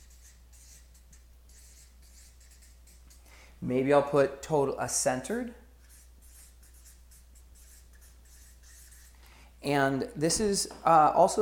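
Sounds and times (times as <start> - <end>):
marker scratching across a board: 0.0 - 3.2, 5.8 - 9.2
speech: 3.6 - 5.6, 9.7 - 11.3.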